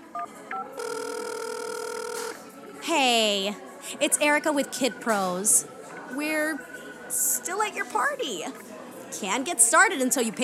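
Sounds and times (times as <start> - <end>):
electronic ringback tone of an outgoing phone call: 0.2 - 2.4
phone keypad beeps: 0.2 - 2.4
speech: 2.9 - 10.4.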